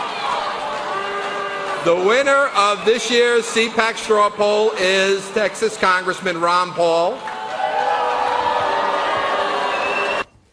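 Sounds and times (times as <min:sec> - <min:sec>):
crowd clapping: 0:00.0 - 0:04.3, 0:07.0 - 0:10.3
speech: 0:01.8 - 0:07.3.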